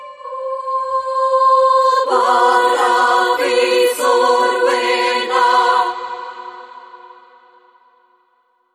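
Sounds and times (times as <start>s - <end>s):
choir singing: 0.0s - 8.2s.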